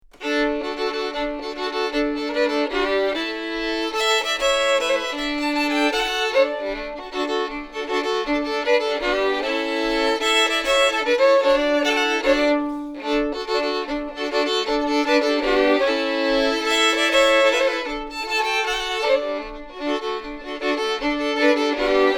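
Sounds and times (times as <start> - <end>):
schottische dance music: 0.0 - 22.1.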